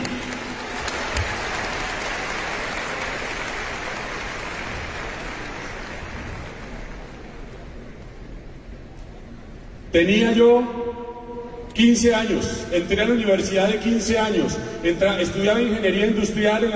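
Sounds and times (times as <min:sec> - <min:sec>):
audience applause: 0:00.0 - 0:07.5
speech: 0:09.9 - 0:11.0, 0:11.8 - 0:16.7.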